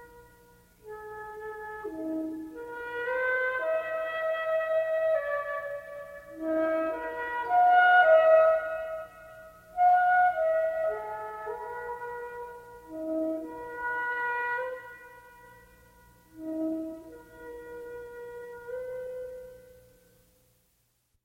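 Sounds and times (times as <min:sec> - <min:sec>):
solo flute: 0:00.0 - 0:20.2.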